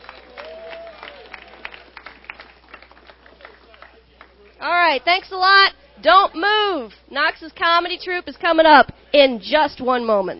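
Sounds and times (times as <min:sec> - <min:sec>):
audience cheering and applauding: 0:00.0 - 0:04.0
speech: 0:04.6 - 0:10.3.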